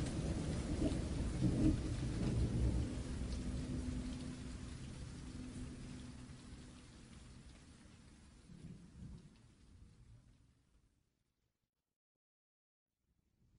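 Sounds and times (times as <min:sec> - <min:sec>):
thunder: 0:00.0 - 0:04.4, 0:08.5 - 0:10.0
rain: 0:00.0 - 0:11.0.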